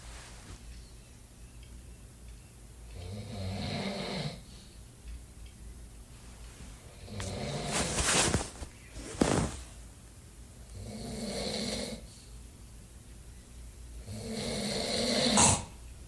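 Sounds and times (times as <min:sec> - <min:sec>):
person snoring: 0:02.9 - 0:04.5, 0:06.9 - 0:08.0, 0:10.7 - 0:12.1, 0:14.0 - 0:15.7.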